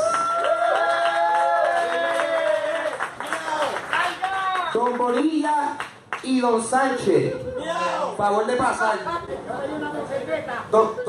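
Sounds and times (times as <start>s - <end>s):
audience cheering: 0.0s - 4.9s
audience applause: 0.0s - 6.3s
speech: 4.7s - 11.0s.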